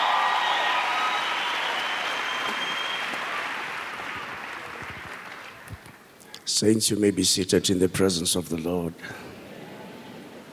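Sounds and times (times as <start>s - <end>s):
faint cheers: 0.0s - 5.8s
church congregation clapping at the Word Explosion 2022 service: 0.0s - 6.4s
speech: 6.6s - 9.3s.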